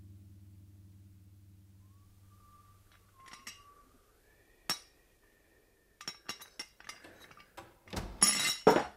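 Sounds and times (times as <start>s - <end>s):
dishes and a coffee pot clinking and clattering: 3.1s - 3.8s, 4.7s - 4.9s, 6.0s - 7.6s, 8.2s - 8.9s.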